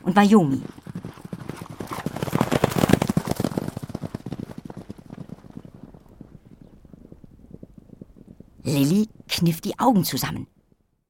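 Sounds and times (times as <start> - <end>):
horse hooves galloping: 0.0 - 9.9
speech: 0.2 - 0.8, 9.4 - 10.6.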